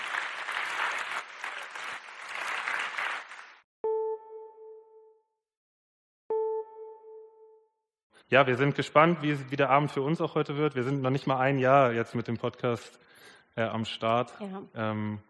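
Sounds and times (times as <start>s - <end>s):
audience applause: 0.0s - 3.6s
speech: 8.3s - 15.2s.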